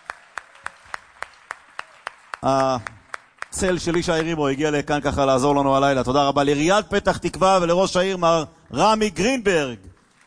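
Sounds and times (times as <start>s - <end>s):
audience clapping: 0.0s - 4.9s, 8.6s - 10.2s
speech: 2.4s - 9.9s.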